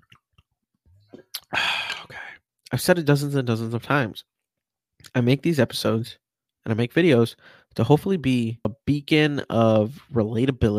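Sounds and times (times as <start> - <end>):
swig of water being drunk: 1.1 - 2.3
speech: 2.7 - 4.4, 5.1 - 10.7.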